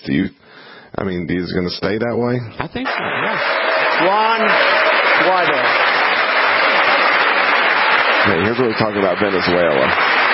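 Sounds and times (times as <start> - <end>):
speech: 0.0 - 5.9, 8.2 - 10.2
audience applause during a political speech: 2.8 - 10.3.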